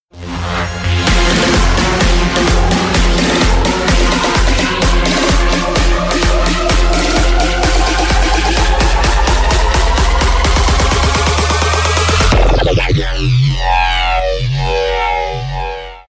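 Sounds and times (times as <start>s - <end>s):
intro music: 0.1s - 16.0s.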